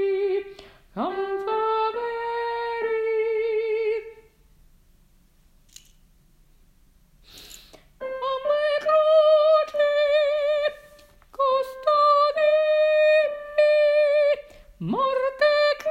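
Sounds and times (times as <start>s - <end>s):
soprano singing: 0.0s - 4.4s, 8.0s - 15.8s.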